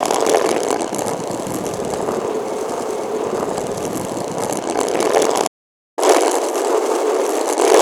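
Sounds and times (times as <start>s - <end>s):
stone rolling: 0.0s - 7.8s.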